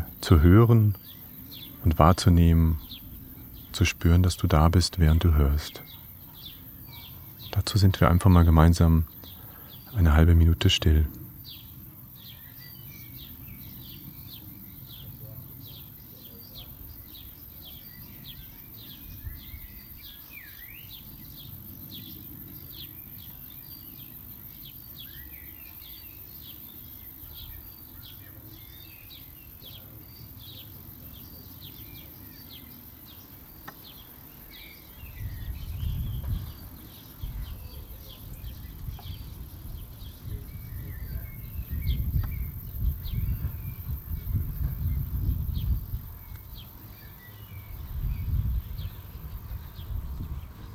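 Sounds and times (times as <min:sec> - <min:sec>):
chorus of small birds chirping: 0:00.0 - 0:50.7
speech: 0:00.2 - 0:01.2, 0:01.8 - 0:03.0, 0:03.8 - 0:06.0, 0:07.6 - 0:09.2, 0:09.9 - 0:11.2
wind rumbling: 0:35.1 - 0:46.7, 0:47.6 - 0:50.7.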